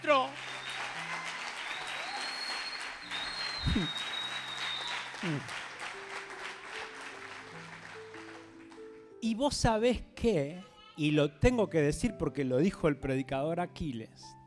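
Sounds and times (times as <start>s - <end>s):
speech: 0.0s - 0.5s, 3.6s - 4.1s, 5.2s - 5.6s, 9.3s - 14.4s
audience applauding: 0.0s - 9.1s.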